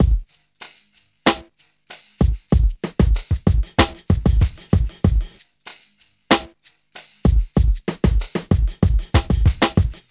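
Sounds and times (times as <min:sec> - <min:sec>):
smooth R&B drums: 0:00.0 - 0:00.2, 0:02.2 - 0:05.4, 0:07.3 - 0:10.0.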